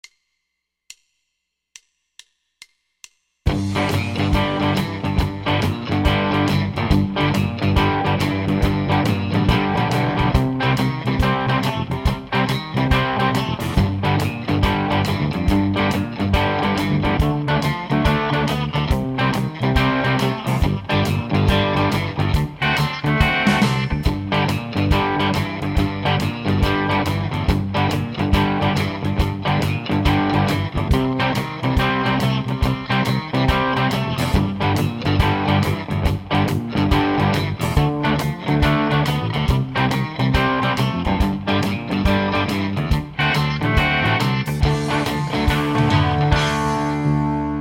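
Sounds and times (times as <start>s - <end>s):
shuffle boogie music at 140 bpm: 3.5s - 47.5s.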